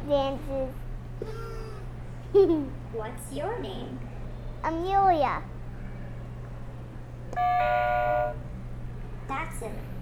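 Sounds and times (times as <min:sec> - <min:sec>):
low hum: 0:00.0 - 0:10.0
speech: 0:00.1 - 0:01.5, 0:02.3 - 0:05.6, 0:07.4 - 0:08.5, 0:09.3 - 0:10.0
robot buzzer chime: 0:07.4 - 0:08.4.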